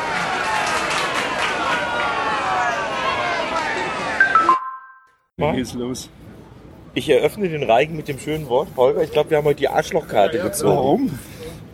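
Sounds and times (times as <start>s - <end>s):
crowd applause: 0.0s - 3.9s
speech: 5.4s - 6.2s, 6.9s - 11.3s.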